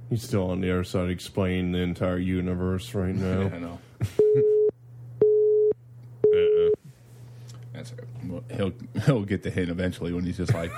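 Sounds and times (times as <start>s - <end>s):
speech: 0.1s - 4.5s, 7.8s - 10.7s
telephone busy signal: 4.2s - 6.8s.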